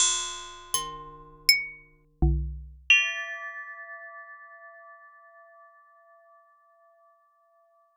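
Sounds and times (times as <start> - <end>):
impacts on solids: 0.8 - 2.9.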